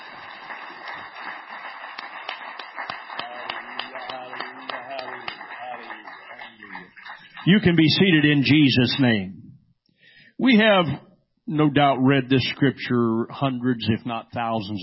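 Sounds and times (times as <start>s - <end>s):
audience hand clapping: 0.0s - 9.1s
speech: 7.4s - 9.4s, 10.4s - 14.8s.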